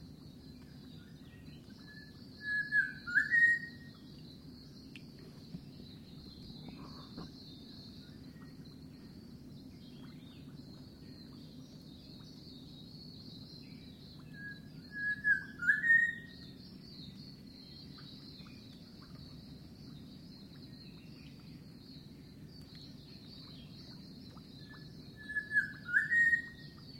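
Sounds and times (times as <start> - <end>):
unidentified bird whistling in mangroves: 1.9 - 3.9, 14.4 - 16.4, 24.7 - 26.6.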